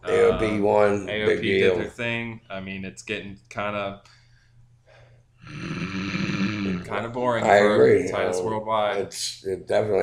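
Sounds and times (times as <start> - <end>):
speech: 0.4 - 4.2, 5.5 - 6.1, 6.8 - 10.0
man snoring during a wrestling match: 5.4 - 6.9.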